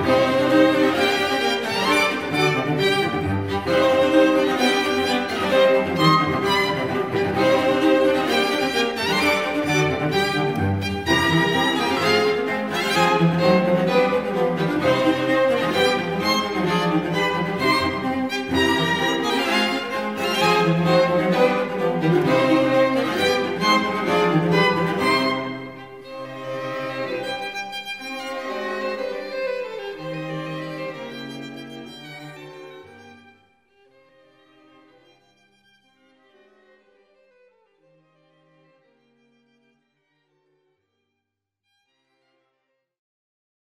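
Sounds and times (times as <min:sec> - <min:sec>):
string quintet: 0:00.0 - 0:40.9.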